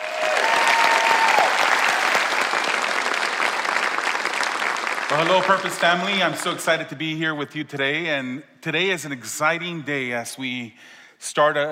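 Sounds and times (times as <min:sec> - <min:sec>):
audience applause: 0:00.0 - 0:06.4
speech: 0:05.1 - 0:11.6.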